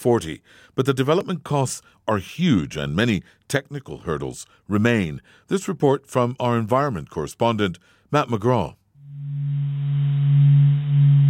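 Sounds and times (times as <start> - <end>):
speech: 0.0 - 9.7
eerie humming of solar vibrations recorded by a solar probe: 9.0 - 11.2.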